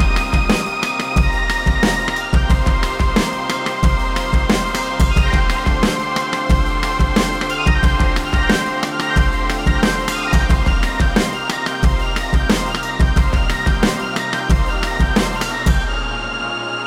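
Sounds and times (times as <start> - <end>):
Solina synthesizer: 0.0 - 16.8.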